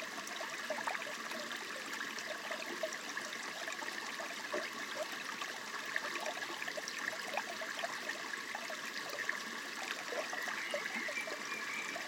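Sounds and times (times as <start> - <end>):
small creek: 0.0 - 12.0
birds: 10.2 - 12.0.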